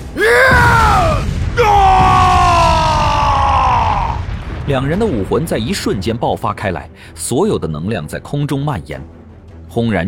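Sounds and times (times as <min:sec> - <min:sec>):
two brothers roaring angrily: 0:00.0 - 0:04.3
speech: 0:04.7 - 0:10.0.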